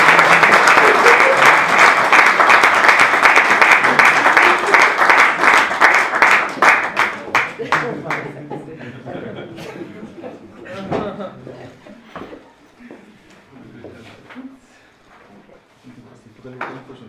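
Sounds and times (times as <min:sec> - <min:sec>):
laughter: 0:00.0 - 0:02.0, 0:07.3 - 0:12.1
audience applause welcoming two announced guests: 0:00.0 - 0:08.4.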